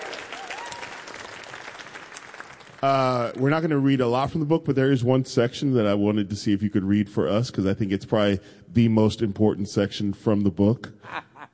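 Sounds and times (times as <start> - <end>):
audience applause at a book event: 0.0 - 3.4
speech: 2.8 - 11.3.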